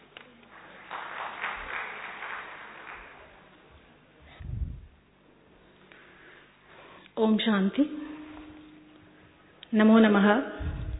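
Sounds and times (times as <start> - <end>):
audience clapping: 0.0 - 3.9
speech: 7.2 - 8.0, 9.7 - 10.6.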